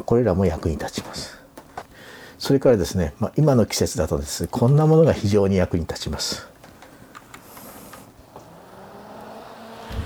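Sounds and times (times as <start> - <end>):
speech: 0.0 - 1.3, 2.4 - 6.5
USB desk fan blowing air: 6.2 - 10.0.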